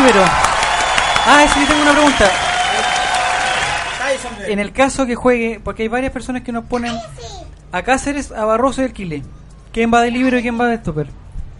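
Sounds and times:
applause: 0.0 - 4.5
speech: 1.2 - 2.4, 4.2 - 11.2.

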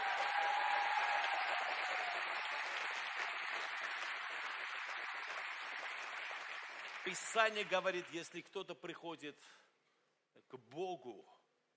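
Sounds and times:
audience applauding: 0.0 - 8.4
speech: 7.1 - 9.6, 10.5 - 11.3.

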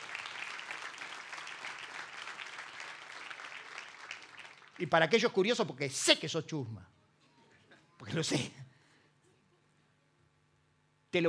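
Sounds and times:
audience applause: 0.0 - 4.8
speech: 4.8 - 7.0, 8.1 - 8.6.

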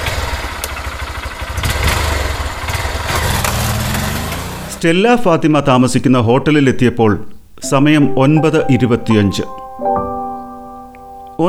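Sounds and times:
motorbike engine droning as the bike is ridden: 0.0 - 7.2
speech: 4.8 - 10.0.

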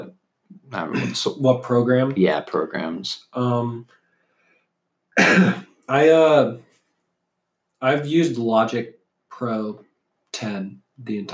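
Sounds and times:
speech: 0.0 - 4.0, 5.2 - 6.7, 7.8 - 11.3
person clearing throat: 0.9 - 1.3, 5.2 - 5.8.

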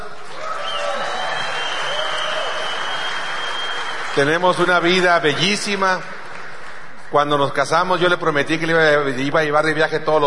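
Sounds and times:
audience applause: 0.0 - 7.1
speech: 4.2 - 6.2, 7.1 - 10.2.

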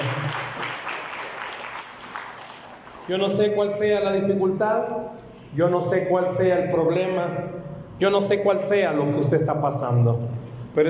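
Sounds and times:
audience applauding: 0.0 - 3.2
speech: 3.1 - 10.8.

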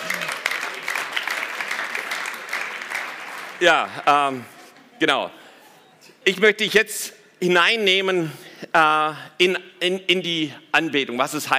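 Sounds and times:
audience applause: 0.0 - 4.0
speech: 3.6 - 5.4, 6.3 - 11.5.

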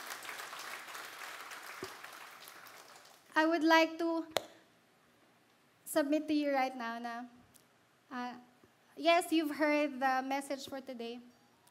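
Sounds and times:
church congregation giving a clap of praise during a service: 0.0 - 3.3
speech: 3.4 - 4.5, 5.9 - 7.4, 8.1 - 11.3.

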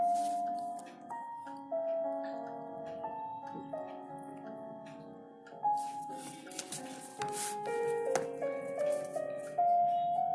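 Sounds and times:
clock ticking: 0.0 - 9.2
slow moody instrumental music: 0.0 - 10.3
pencil strokes: 0.1 - 0.4, 5.8 - 9.2.

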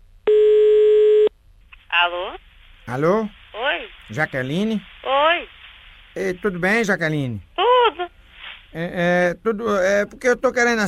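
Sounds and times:
low buzzing telephone tone while a call is placed: 0.2 - 1.3
speech: 2.0 - 3.4, 4.1 - 5.5, 6.2 - 7.5, 8.7 - 10.8.

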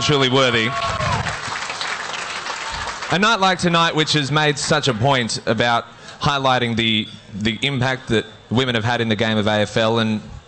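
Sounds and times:
speech: 0.0 - 0.9, 3.1 - 10.4
audience applause: 0.0 - 3.6.

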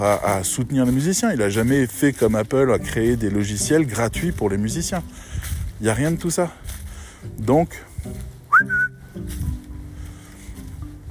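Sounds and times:
speech: 0.0 - 8.8
person whistling to call back a dog: 8.5 - 9.2.

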